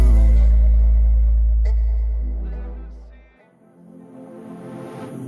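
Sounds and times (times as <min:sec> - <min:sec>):
deep hip hop bass: 0:00.0 - 0:03.3.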